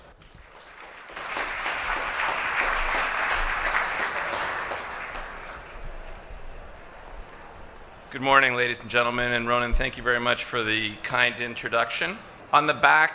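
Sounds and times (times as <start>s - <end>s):
audience applause at a morning business event: 0.0s - 8.1s
speech: 8.2s - 13.1s.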